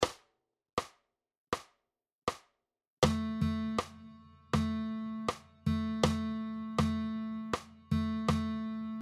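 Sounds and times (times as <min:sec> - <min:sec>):
guitar playing rhythm dictation exercises: 0:03.0 - 0:09.0.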